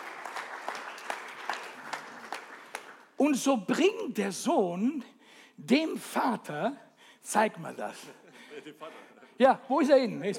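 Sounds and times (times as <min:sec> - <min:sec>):
audience clapping: 0:00.0 - 0:03.4
speech: 0:03.2 - 0:10.3.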